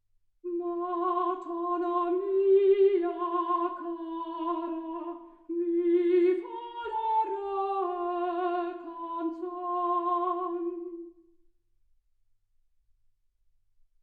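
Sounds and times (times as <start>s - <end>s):
soprano singing: 0.5s - 11.2s.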